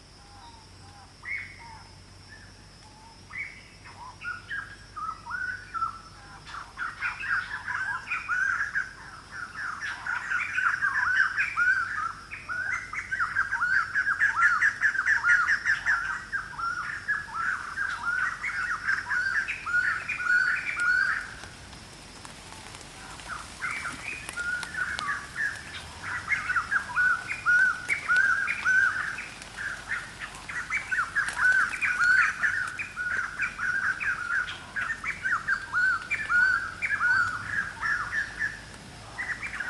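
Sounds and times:
many birds dropping from trees in afternoon jungle, Khao Yai National Park, Korat, Thailand: 0:00.0 - 0:39.6.

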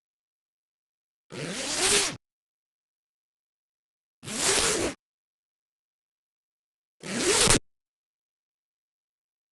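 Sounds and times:
metal zipper on wool coat zipping fast: 0:01.3 - 0:02.2, 0:04.2 - 0:05.0, 0:07.0 - 0:07.7.

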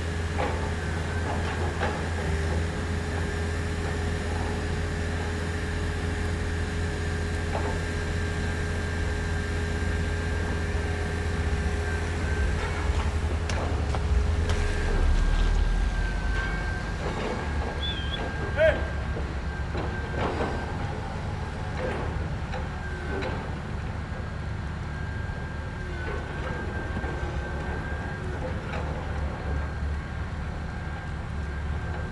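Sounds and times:
construction site ambience: 0:00.0 - 0:32.1.

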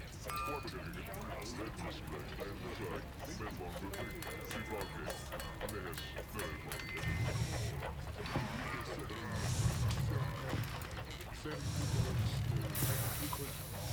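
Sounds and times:
orc camp desert ambience: 0:00.0 - 0:13.9.

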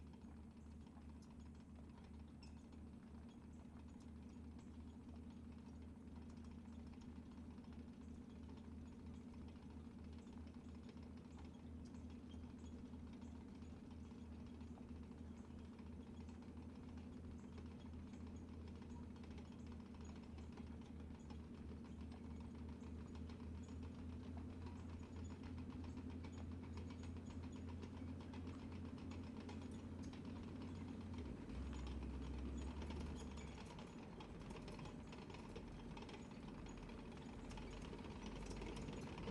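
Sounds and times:
Stuart M5A1 tank engine heard from outside: 0:00.0 - 0:39.2
Stuart M5A1 tank reversing: 0:27.1 - 0:39.2.

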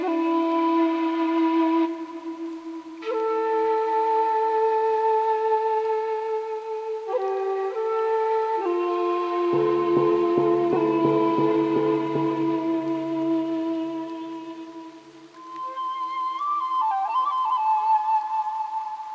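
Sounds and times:
music: 0:00.0 - 0:19.1
temple ambience: 0:09.5 - 0:14.1.

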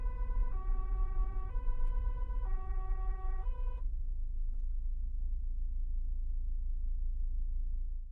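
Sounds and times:
siren: 0:00.0 - 0:03.9
Volvo V70 engine starting: 0:00.0 - 0:07.2
Volvo V70 driving slowly, heard from the interior trunk: 0:00.0 - 0:08.1.

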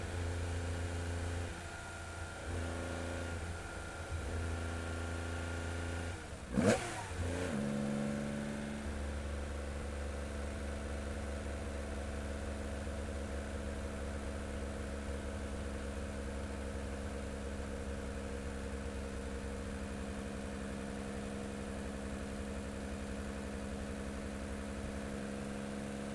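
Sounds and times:
Porsche 911 engine during fast onboard drive: 0:00.0 - 0:26.1.

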